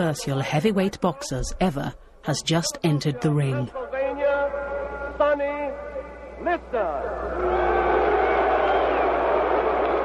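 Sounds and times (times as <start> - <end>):
speech: 0.0 - 3.8, 5.2 - 7.8
boxing arena crowd booing: 7.1 - 10.0.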